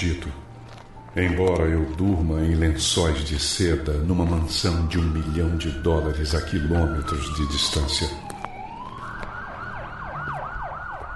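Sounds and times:
speech: 0.0s - 0.5s, 1.2s - 8.3s
police siren: 2.7s - 11.1s.

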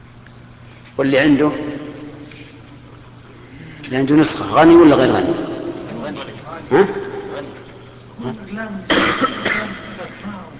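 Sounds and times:
speech: 1.0s - 1.7s, 3.9s - 5.5s, 6.1s - 7.6s, 8.2s - 10.4s
sneeze: 8.9s - 9.9s.

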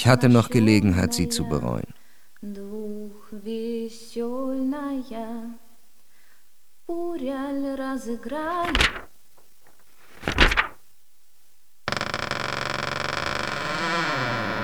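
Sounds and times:
speech: 0.0s - 2.6s, 3.4s - 5.6s, 6.9s - 9.0s
door creaking open: 8.6s - 10.8s, 11.9s - 14.6s.

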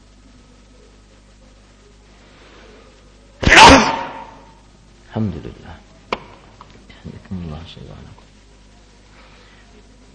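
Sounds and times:
sneeze: 3.4s - 4.6s
speech: 5.2s - 5.9s, 7.0s - 8.3s.

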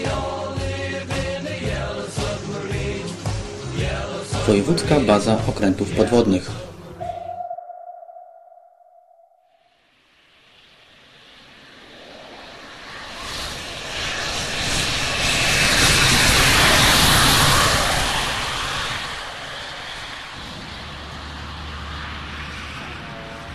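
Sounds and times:
airplane engine roar: 0.0s - 9.2s, 10.3s - 23.5s
speech: 4.5s - 6.7s.

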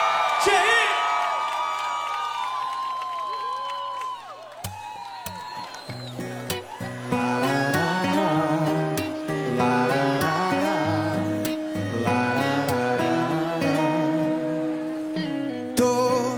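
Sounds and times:
high whoops and whistle-like cries: 0.0s - 8.2s
sharp claps: 0.0s - 8.2s
studio crowd at a radio show cheering and shouting: 0.0s - 15.7s.

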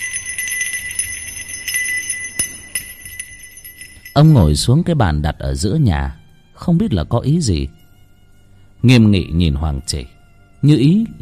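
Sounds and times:
hand bell hanging on a house pillar shaken by a man: 0.0s - 4.7s
speech: 4.2s - 7.8s, 8.8s - 11.1s.

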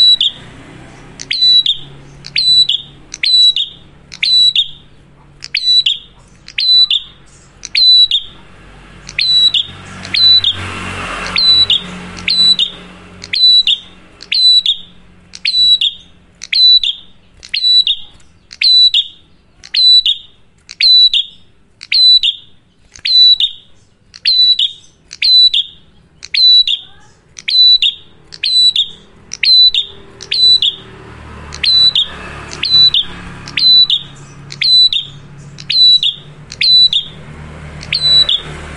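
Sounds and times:
prinia song: 0.0s - 38.7s.

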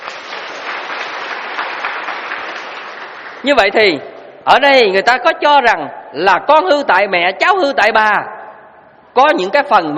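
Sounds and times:
applause from students at a Buddhist dharma talk: 0.0s - 3.5s
speech: 3.4s - 8.4s, 9.2s - 9.9s.

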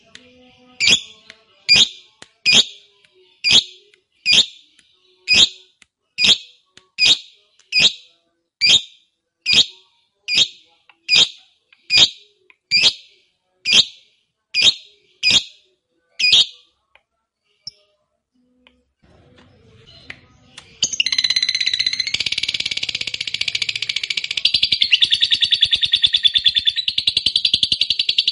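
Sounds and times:
fighter-type lovebird giving harsh shrill chirps and buzzy chatter: 0.8s - 2.8s, 3.4s - 4.6s, 5.3s - 5.6s, 6.2s - 13.0s, 13.7s - 14.0s, 14.6s - 15.6s, 16.2s - 16.6s, 20.8s - 28.3s.

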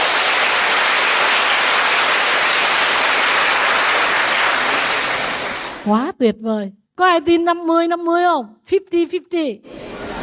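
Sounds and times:
audience applause: 0.0s - 5.8s
speech: 5.8s - 9.8s.

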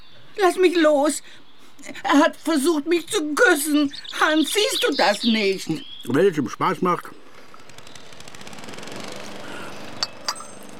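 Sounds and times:
speech: 0.4s - 7.2s
lawn mower running: 6.7s - 10.7s.

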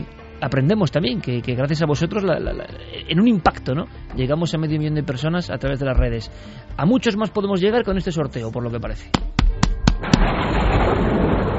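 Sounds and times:
speech: 0.0s - 9.3s
hand smacking a book: 9.1s - 10.0s
steady rushing crackling noise: 9.8s - 11.5s.

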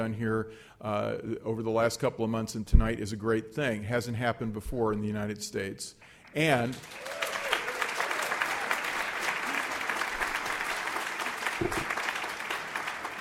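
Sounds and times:
speech: 0.0s - 7.2s
audience applause at a Kansas City library literary event: 6.4s - 13.2s.

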